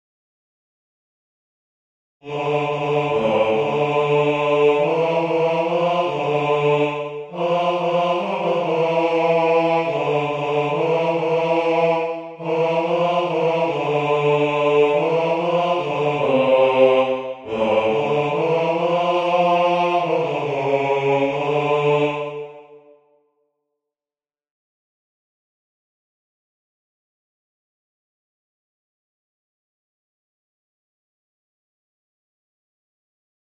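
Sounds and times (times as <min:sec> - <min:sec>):
tenor singing: 0:02.2 - 0:22.8.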